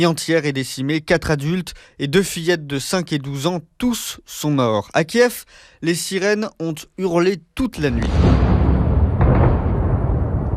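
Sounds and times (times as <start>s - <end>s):
speech: 0.0s - 8.4s
explosion from drone attack: 7.8s - 10.5s
heavy low rumble: 8.0s - 10.5s.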